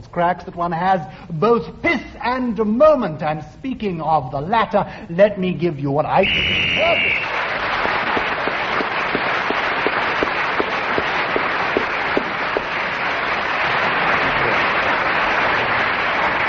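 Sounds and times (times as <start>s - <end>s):
speech: 0.2s - 7.4s
round of applause: 6.2s - 16.4s.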